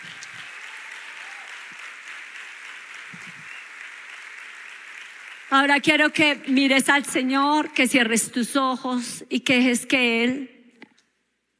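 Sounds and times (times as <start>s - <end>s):
audience applause: 0.0s - 6.4s
speech: 5.5s - 10.5s.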